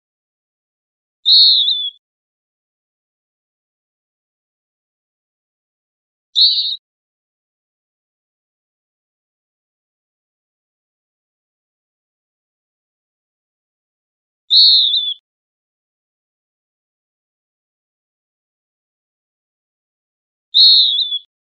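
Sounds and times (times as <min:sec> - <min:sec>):
western wood pewee call: 0:01.3 - 0:02.0, 0:06.4 - 0:06.8, 0:14.5 - 0:15.2, 0:20.6 - 0:21.3.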